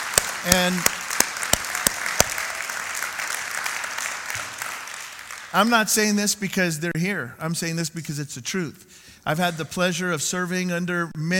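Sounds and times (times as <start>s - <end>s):
audience applauding a district superintendent: 0.0s - 6.0s
speech: 0.4s - 1.0s, 5.5s - 11.3s.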